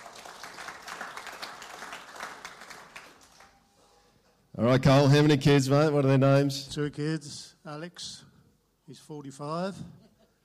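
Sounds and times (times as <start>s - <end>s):
crowd applauding: 0.0s - 3.6s
speech: 4.6s - 8.3s, 8.9s - 10.0s.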